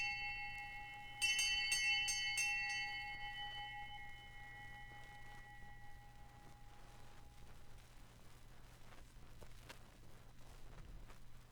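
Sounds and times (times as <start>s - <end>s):
hand bell ringing: 0.0s - 7.2s.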